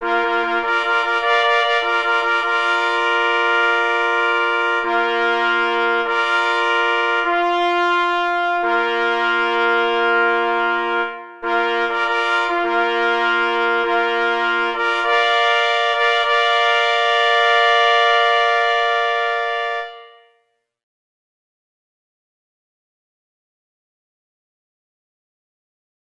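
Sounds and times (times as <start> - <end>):
hunting horn call: 0.0 - 20.5.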